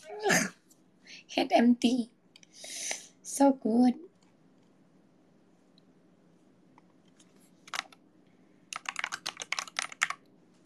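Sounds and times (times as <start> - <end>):
speech: 1.4 - 2.2, 3.4 - 4.1
typing on a computer keyboard: 7.6 - 8.0, 8.7 - 10.3.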